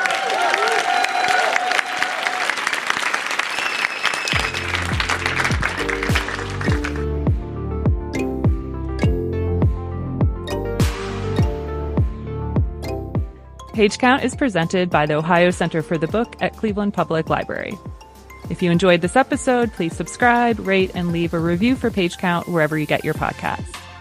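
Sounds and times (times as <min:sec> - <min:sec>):
crowd clapping: 0:00.0 - 0:07.4
rhythmic music with a deep bass line: 0:04.4 - 0:23.9
speech: 0:13.8 - 0:17.9, 0:18.5 - 0:23.8.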